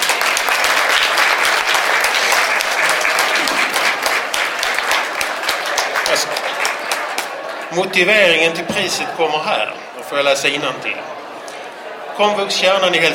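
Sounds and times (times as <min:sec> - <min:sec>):
audience applause: 0:00.0 - 0:09.0
speech: 0:07.7 - 0:11.2, 0:12.2 - 0:13.1.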